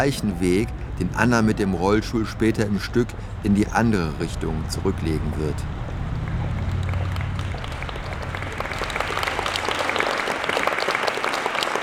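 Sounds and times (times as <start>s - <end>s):
speech: 0.0s - 5.8s
audience applause in a theater: 5.8s - 11.8s.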